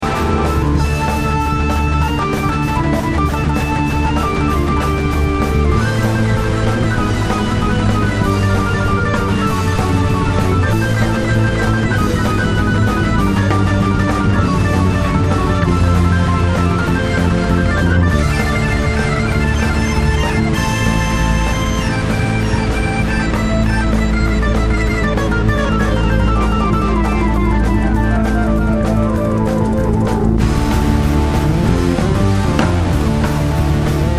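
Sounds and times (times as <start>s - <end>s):
solo keyboard: 0.0s - 34.1s.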